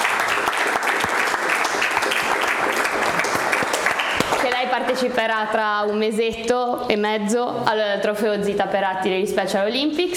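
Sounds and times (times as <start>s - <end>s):
audience applause: 0.0s - 4.6s
speech: 4.9s - 10.1s.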